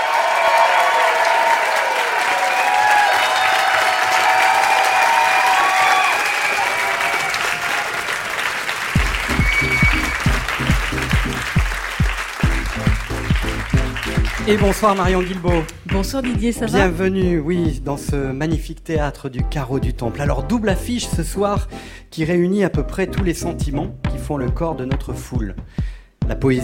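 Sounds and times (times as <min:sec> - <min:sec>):
whistles and cheers: 0:00.0 - 0:10.8
large indoor theatre crowd applauding: 0:00.0 - 0:16.8
rhythmic low thumps: 0:09.0 - 0:26.6
speech: 0:14.5 - 0:26.6.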